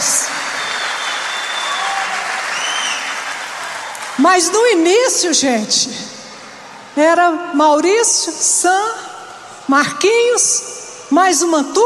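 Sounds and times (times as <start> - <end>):
audience applause: 0.0 - 4.2
whistles and cheers: 0.3 - 4.2
speech: 4.2 - 6.2, 7.0 - 9.1, 9.7 - 11.8.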